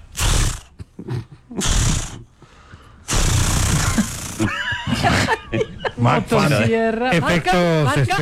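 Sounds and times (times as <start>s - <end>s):
voice imitating chainsaw engine trying to start: 0.1s - 0.7s, 1.6s - 2.2s, 3.1s - 4.5s
laughter: 3.8s - 8.2s.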